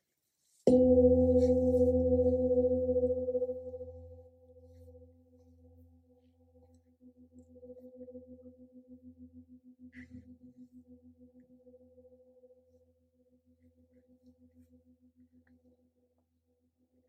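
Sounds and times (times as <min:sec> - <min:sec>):
gong struck: 0:00.7 - 0:04.1.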